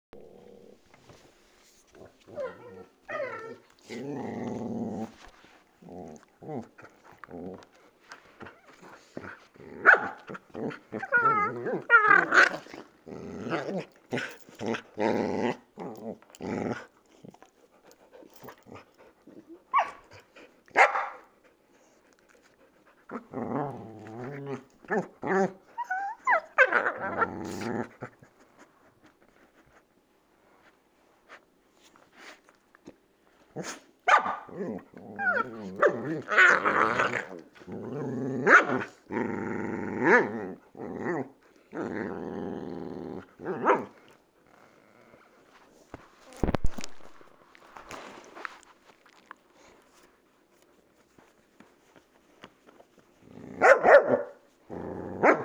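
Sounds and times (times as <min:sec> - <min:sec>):
puppy and adult dog growling: 0:00.2 - 0:01.3, 0:01.9 - 0:20.3, 0:23.0 - 0:28.3, 0:33.6 - 0:45.3, 0:46.3 - 0:48.3, 0:53.2 - 0:55.4.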